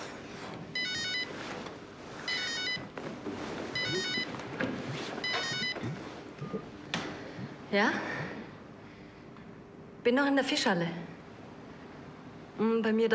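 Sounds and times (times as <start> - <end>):
telephone ringing with high warbling electronic trill: 0.8 - 1.5, 2.2 - 3.0, 3.7 - 4.5, 5.2 - 5.9
speech: 7.7 - 8.2, 10.0 - 11.1, 12.6 - 13.1.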